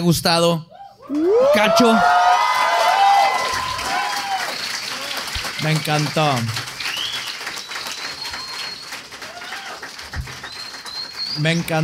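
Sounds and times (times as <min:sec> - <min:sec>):
speech: 0:00.0 - 0:02.4, 0:05.6 - 0:06.7, 0:11.4 - 0:11.8
live audience clapping: 0:01.1 - 0:11.8
audience whistling: 0:06.8 - 0:09.1, 0:10.2 - 0:11.7.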